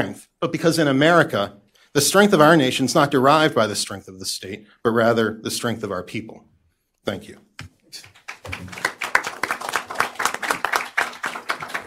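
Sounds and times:
speech: 0.0s - 8.8s
audience applause: 8.2s - 11.8s.

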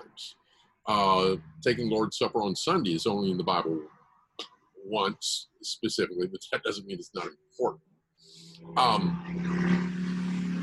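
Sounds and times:
speech: 0.2s - 9.7s
motorcycle passing by: 8.4s - 10.6s.

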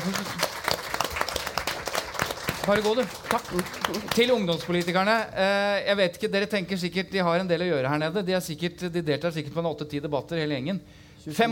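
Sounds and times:
audience applause: 0.0s - 5.2s
speech: 2.6s - 11.5s.

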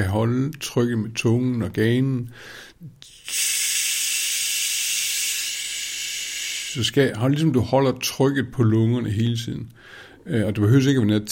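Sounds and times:
speech: 0.0s - 3.5s, 6.8s - 11.3s
ujjayi breathing exhale: 2.3s - 6.8s, 9.8s - 10.2s.

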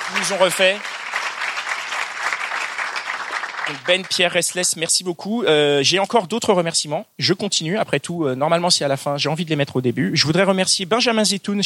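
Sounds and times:
audience applause: 0.0s - 4.4s
speech: 0.1s - 1.1s, 3.7s - 11.6s.

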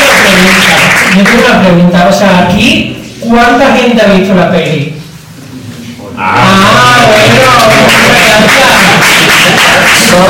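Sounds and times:
audience applause: 0.0s - 1.4s, 6.4s - 10.2s
speech: 0.4s - 5.0s, 6.2s - 10.2s.

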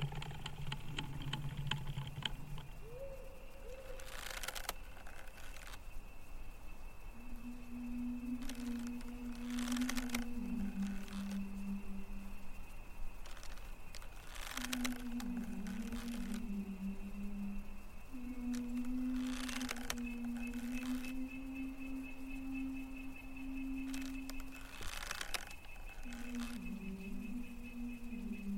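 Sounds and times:
low hum: 0.0s - 28.5s
steady thin tone: 0.0s - 28.5s
female ghostly voice singing a slow lullaby: 7.2s - 28.5s.

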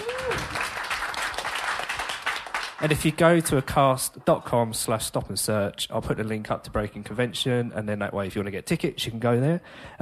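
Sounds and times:
group clapping in a round of applause: 0.0s - 3.7s
speech: 2.8s - 9.9s.

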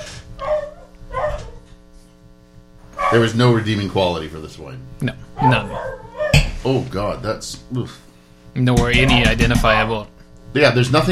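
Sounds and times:
dog barking: 0.0s - 1.6s, 3.0s - 3.4s, 5.4s - 6.5s
faint low hum: 0.0s - 11.1s
speech: 3.1s - 6.0s, 6.6s - 11.1s.

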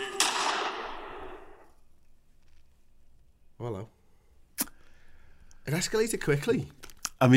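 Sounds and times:
gunshots in a jingle: 0.2s - 1.7s
speech: 5.7s - 7.3s.

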